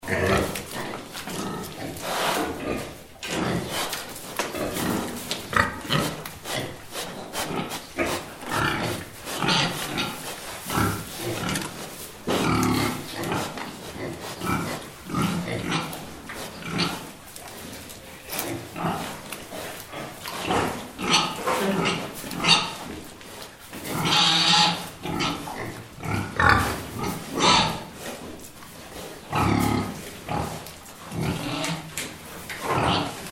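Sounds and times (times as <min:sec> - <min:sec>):
pigs oinking: 0:00.0 - 0:33.3.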